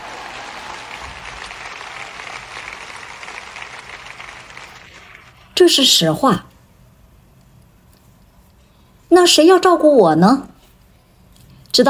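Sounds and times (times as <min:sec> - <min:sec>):
person clapping: 0:00.0 - 0:05.4
speech: 0:05.6 - 0:06.5, 0:09.2 - 0:10.5.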